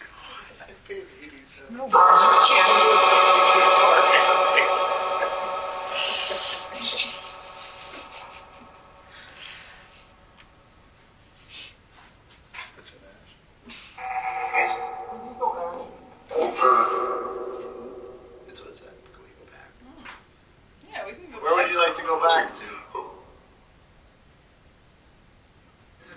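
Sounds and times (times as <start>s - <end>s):
spirit box radio sweep in a basement: 1.8s - 10.6s, 14.0s - 19.0s, 21.4s - 23.4s.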